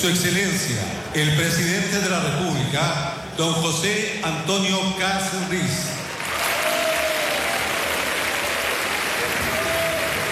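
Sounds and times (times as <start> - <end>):
speech: 0.0 - 6.0
crowd applause in a congressional hall: 6.1 - 10.3.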